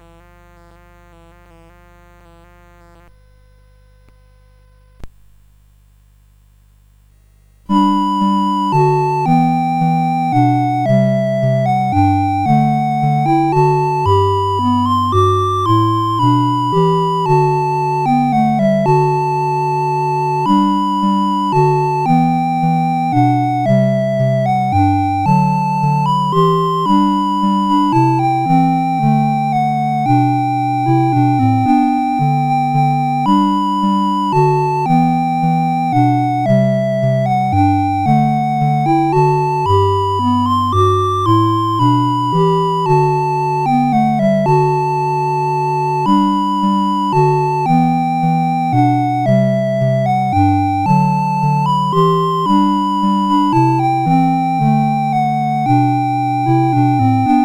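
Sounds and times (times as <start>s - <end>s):
CSG 8580 sound chip: 7.7s - 57.4s.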